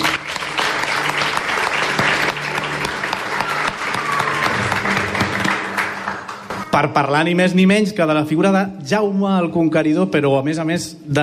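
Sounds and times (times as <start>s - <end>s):
crowd applauding: 0.0s - 7.3s
speech: 6.8s - 11.2s.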